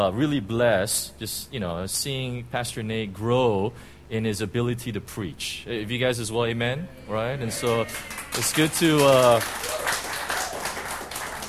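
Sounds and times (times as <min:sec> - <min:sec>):
speech: 0:00.0 - 0:09.9
church congregation clapping: 0:07.5 - 0:11.4.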